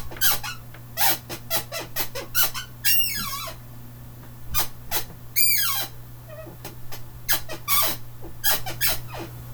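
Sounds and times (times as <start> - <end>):
squeak: 0.2 - 3.6, 4.9 - 6.6, 7.3 - 9.5.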